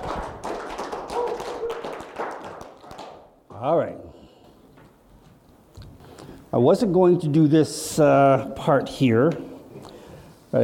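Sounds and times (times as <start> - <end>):
audience applause: 0.0 - 3.2
speech: 3.6 - 4.1, 6.5 - 9.5.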